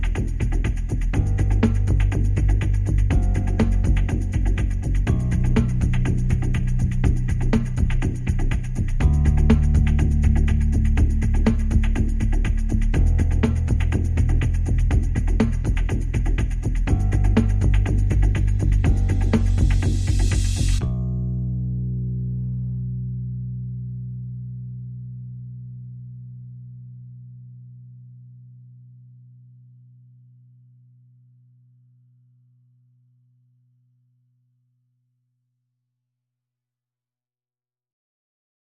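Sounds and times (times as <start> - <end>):
drums: 0.0 - 20.9
bass: 0.0 - 34.1.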